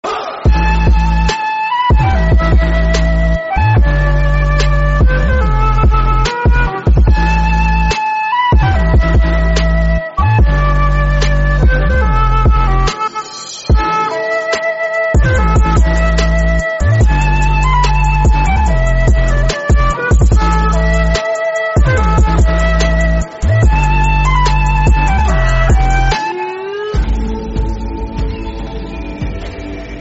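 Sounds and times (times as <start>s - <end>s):
dubstep music: 0.0s - 29.9s.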